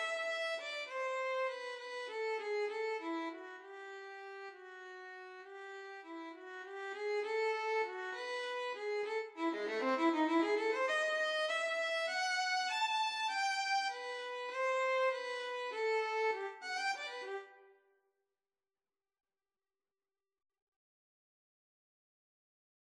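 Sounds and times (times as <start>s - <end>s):
violin playing in a duet with bass: 0.0s - 17.6s.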